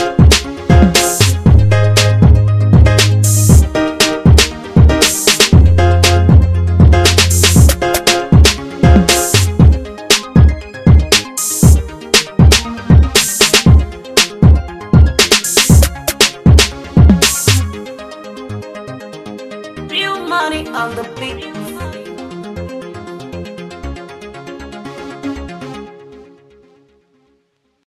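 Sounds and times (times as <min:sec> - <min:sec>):
music beat: 0:00.0 - 0:17.8.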